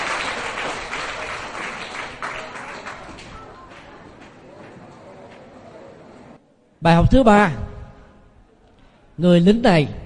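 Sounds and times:
children applauding: 0.0 - 4.9
speech: 6.8 - 7.6, 9.2 - 10.0.

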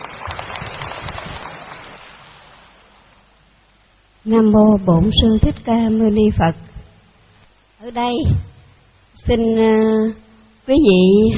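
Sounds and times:
crowd clapping: 0.0 - 2.7
speech: 4.2 - 6.6, 7.9 - 8.5, 9.2 - 11.3.

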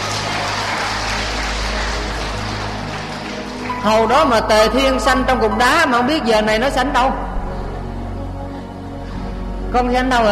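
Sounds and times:
audience applause: 0.0 - 3.9
speech: 3.8 - 7.2, 9.7 - 10.2.

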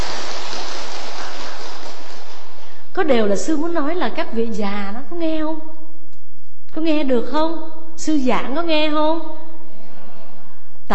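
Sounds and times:
audience applause: 0.0 - 2.8
speech: 3.0 - 5.8, 6.8 - 9.4.

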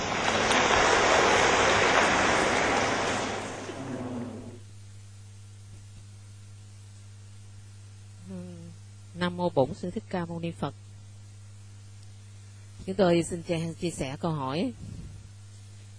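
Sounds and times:
audience applause: 0.0 - 4.6
speech: 9.3 - 10.8, 12.8 - 15.0.

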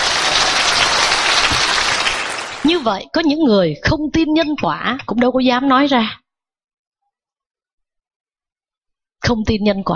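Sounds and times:
audience applause at a Buddhist dharma talk: 0.0 - 2.9
speech: 2.8 - 6.2, 9.3 - 9.9.

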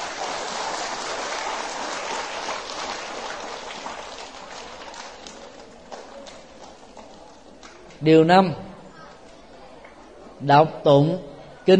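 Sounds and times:
applause: 0.0 - 7.8
speech: 8.0 - 8.6, 10.4 - 11.7.

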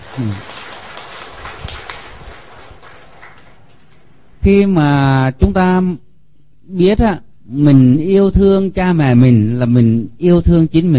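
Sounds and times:
audience applause: 0.0 - 4.0
speech: 0.2 - 0.6, 4.4 - 6.0, 6.7 - 10.9.

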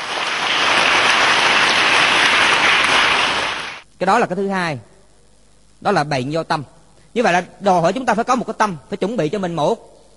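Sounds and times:
audience applause: 0.0 - 3.8
speech: 4.0 - 4.9, 5.8 - 9.9.

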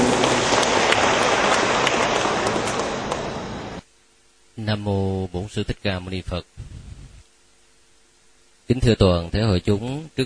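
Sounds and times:
audience applause: 0.0 - 3.8
speech: 4.7 - 6.7, 8.7 - 10.2.

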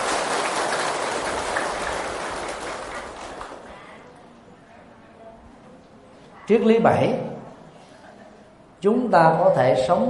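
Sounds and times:
audience applause: 0.0 - 3.8
speech: 6.5 - 7.3, 8.8 - 10.0.

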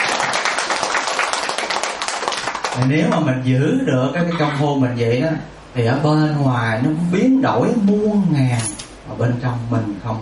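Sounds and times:
audience clapping during a Buddhist talk: 0.0 - 3.3
speech: 2.8 - 10.2.

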